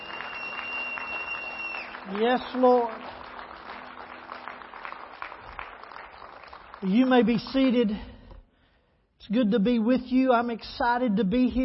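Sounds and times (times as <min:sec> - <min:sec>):
audience clapping: 0:00.0 - 0:07.8
speech: 0:02.1 - 0:03.1, 0:06.8 - 0:08.1, 0:09.3 - 0:11.6.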